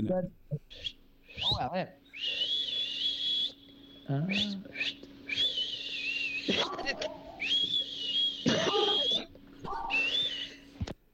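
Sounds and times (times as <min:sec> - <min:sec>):
faint steady hum: 0:00.0 - 0:11.1
person whistling an imitation of a thrush song: 0:00.7 - 0:06.6, 0:07.4 - 0:09.3, 0:09.9 - 0:10.6.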